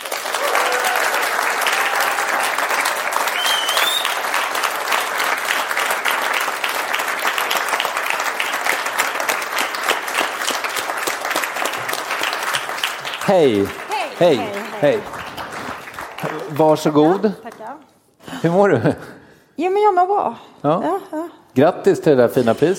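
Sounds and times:
audience applause: 0:00.0 - 0:17.8
speech: 0:13.3 - 0:15.2, 0:16.2 - 0:17.4, 0:18.4 - 0:22.7.

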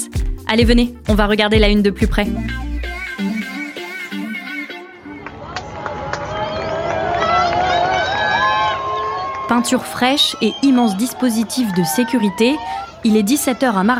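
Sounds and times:
music: 0:00.0 - 0:05.4
speech: 0:00.5 - 0:02.7, 0:09.6 - 0:13.9
crowd cheering a royal motorcade: 0:04.6 - 0:13.9
whistles: 0:06.2 - 0:09.4, 0:10.2 - 0:11.0.

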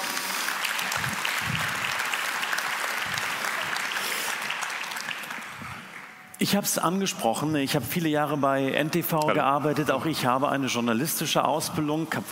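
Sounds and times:
audience applause: 0:00.0 - 0:06.2
speech: 0:06.4 - 0:12.3.

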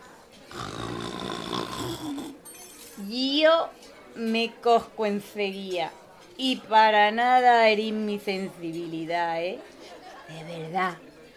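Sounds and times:
person imitating snoring: 0:00.5 - 0:02.4
speech: 0:03.1 - 0:09.7, 0:10.3 - 0:11.1.

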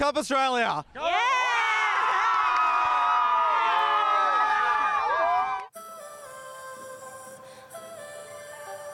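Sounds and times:
speech: 0:00.0 - 0:01.4
crowd cheering outside Brisbane Stadium celebrating the Matildas: 0:01.0 - 0:05.7.

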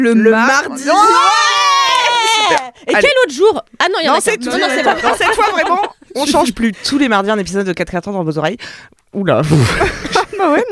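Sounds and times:
speech: 0:00.0 - 0:01.5, 0:02.5 - 0:10.7
crowd cheering sound effect: 0:00.8 - 0:02.8
laughter: 0:04.4 - 0:06.5, 0:09.4 - 0:10.7.

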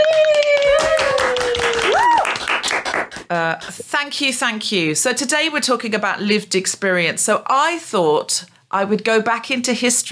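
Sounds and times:
audience applause welcoming a comedian: 0:00.0 - 0:03.3
speech: 0:03.3 - 0:10.1.

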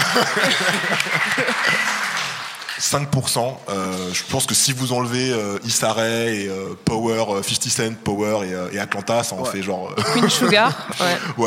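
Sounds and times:
laughter: 0:00.0 - 0:02.4, 0:09.6 - 0:11.4
audience applause: 0:00.0 - 0:02.9
speech: 0:00.2 - 0:02.0, 0:02.8 - 0:11.4.

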